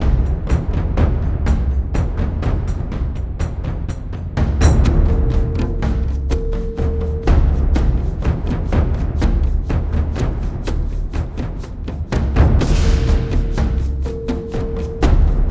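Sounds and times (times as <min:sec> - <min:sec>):
drum loop: 0:00.0 - 0:15.4.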